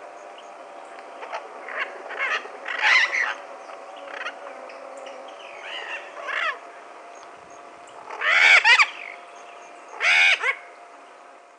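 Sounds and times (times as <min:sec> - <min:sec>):
yellow-collared macaw screeching: 0:01.2 - 0:04.5, 0:05.4 - 0:06.6, 0:08.0 - 0:09.2, 0:09.9 - 0:10.7.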